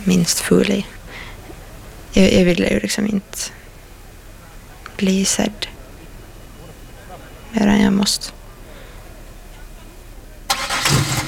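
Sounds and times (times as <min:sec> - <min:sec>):
speech: 0:00.0 - 0:01.3, 0:02.1 - 0:03.6, 0:05.0 - 0:05.7, 0:07.5 - 0:08.4
car engine starting on a rainy December evening: 0:10.5 - 0:11.2.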